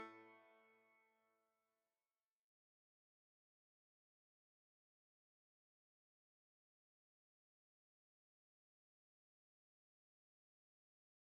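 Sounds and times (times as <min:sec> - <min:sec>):
bagpipe interlude: 0:00.0 - 0:00.6.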